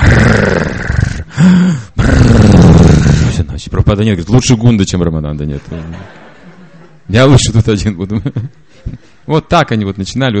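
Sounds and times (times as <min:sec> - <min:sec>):
voice imitating loud snoring: 0:00.0 - 0:03.5
speech: 0:01.4 - 0:01.8, 0:03.6 - 0:06.2, 0:07.1 - 0:10.3
laughter: 0:05.6 - 0:07.1, 0:08.0 - 0:09.0.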